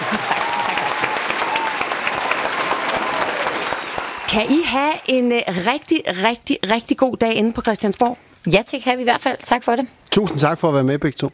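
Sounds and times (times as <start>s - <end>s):
crowd applause: 0.0s - 5.7s
speech: 4.3s - 11.3s.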